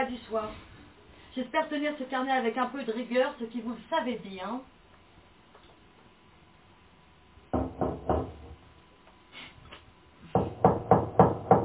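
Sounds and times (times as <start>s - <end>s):
speech: 0.0s - 0.7s, 1.4s - 4.8s
knocking on a door: 7.5s - 8.6s, 10.3s - 11.6s.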